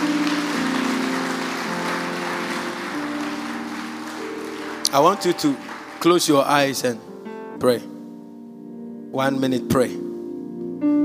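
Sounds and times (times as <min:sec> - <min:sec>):
audience clapping: 0:00.0 - 0:06.9
speech: 0:04.9 - 0:07.9, 0:09.1 - 0:10.0.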